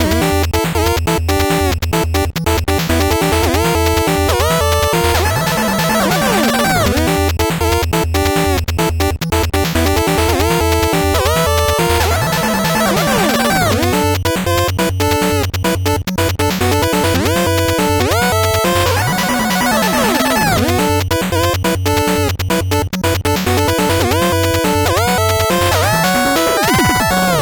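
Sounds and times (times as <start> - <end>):
slow 8-bit background music: 0.0 - 27.4.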